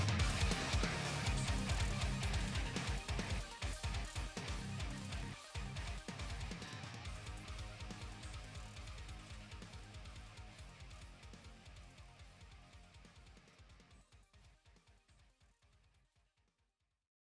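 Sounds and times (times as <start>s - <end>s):
ambient music remix: 0.0s - 11.3s.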